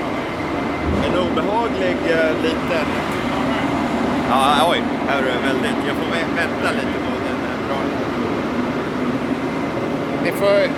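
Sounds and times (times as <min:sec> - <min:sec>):
old Mack truck idling: 0:00.0 - 0:10.7
speech: 0:01.2 - 0:03.2, 0:04.3 - 0:07.1, 0:07.7 - 0:08.6, 0:10.2 - 0:10.7.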